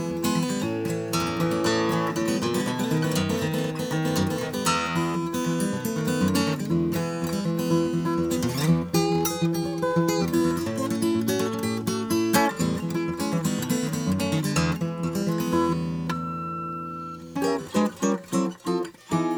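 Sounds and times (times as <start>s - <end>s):
Martin acoustic guitars: 0.0s - 19.3s.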